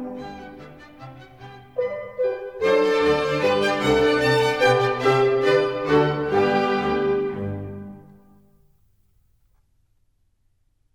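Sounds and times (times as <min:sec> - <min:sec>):
minuet: 0:00.0 - 0:08.5.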